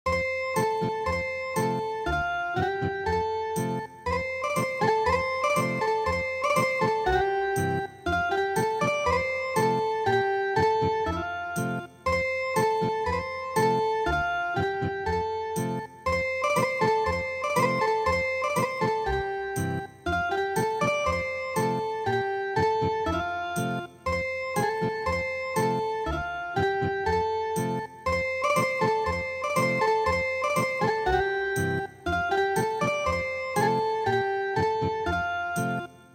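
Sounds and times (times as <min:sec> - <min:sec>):
traditional ethnic guitar music: 0:00.1 - 0:36.0.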